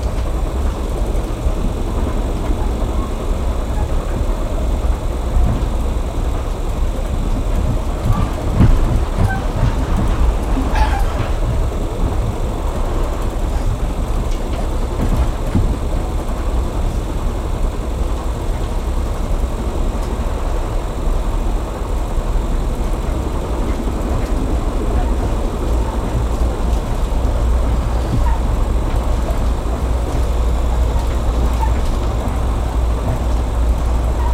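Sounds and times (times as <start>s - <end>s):
train interior at terminal going and stopping: 0.0s - 34.3s.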